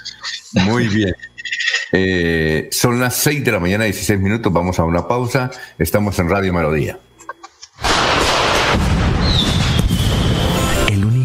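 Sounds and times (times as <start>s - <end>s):
speech: 0.5s - 1.3s, 1.9s - 7.1s
firework explosions: 7.8s - 10.6s.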